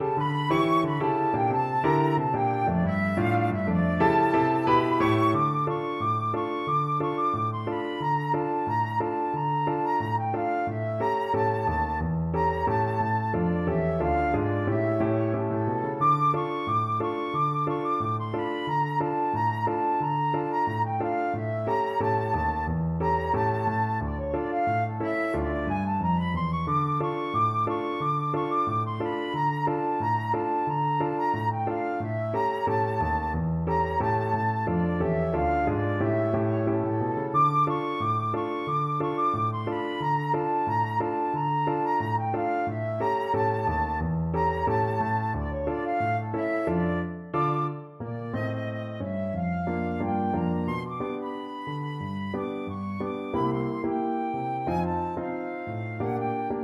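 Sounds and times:
flute: 0.0s - 56.6s.

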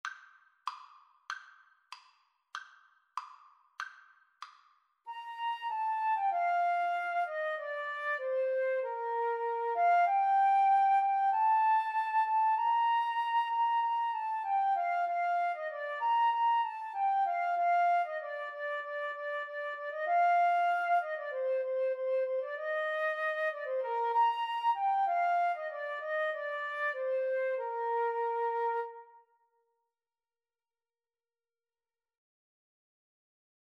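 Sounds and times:
flute and clarinet duet: 5.1s - 29.3s.

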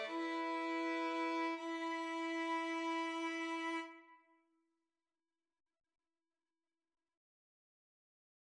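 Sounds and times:
violin trio: 0.0s - 4.0s.

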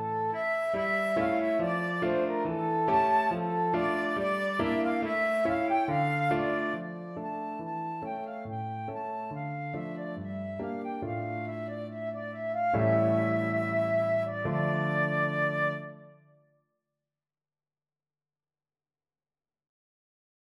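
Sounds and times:
flute playing a gavotte: 0.0s - 16.3s.

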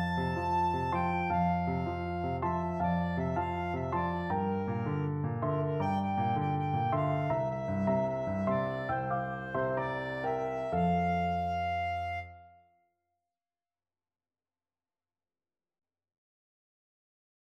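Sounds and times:
clarinet: 0.0s - 12.7s.

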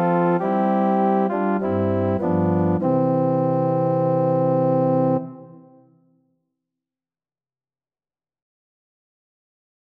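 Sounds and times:
organ: 0.0s - 5.7s.

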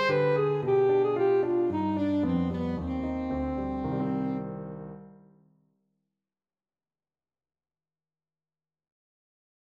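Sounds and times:
saxophone playing a syrtos dance tune: 0.0s - 4.4s.

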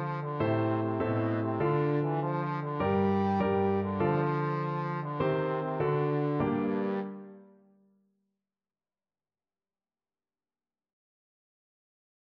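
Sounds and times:
trombone: 0.0s - 7.4s.

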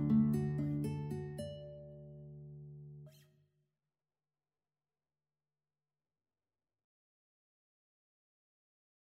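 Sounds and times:
guitar trio playing: 0.0s - 2.8s.

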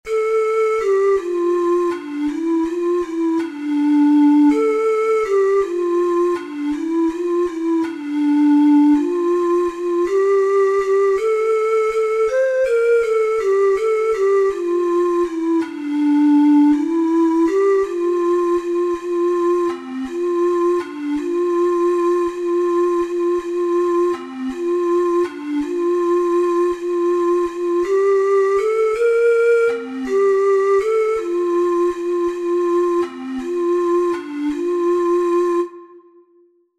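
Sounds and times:
four-hole ocarina playing: 0.1s - 36.6s.

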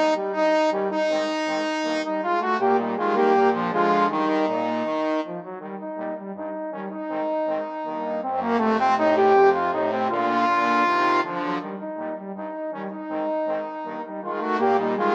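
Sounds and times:
trombone quartet playing: 0.0s - 15.1s.

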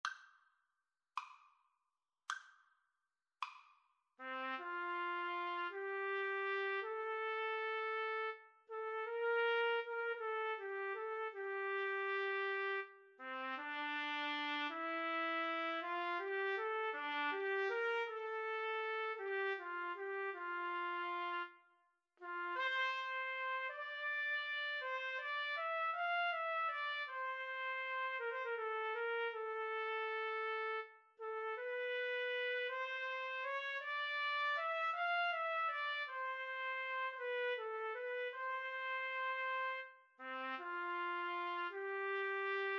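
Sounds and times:
trumpet duet: 4.2s - 21.6s, 22.2s - 42.7s.

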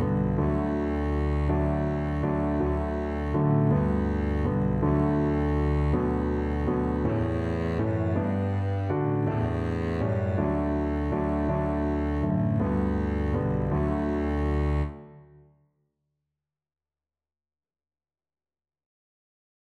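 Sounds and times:
Christmas carol on double bass: 0.0s - 15.0s.

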